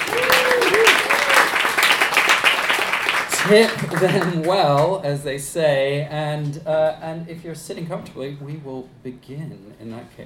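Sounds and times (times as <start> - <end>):
cheers and whoops: 0.0 - 1.7
audience applause: 0.0 - 4.6
speech: 3.5 - 10.2.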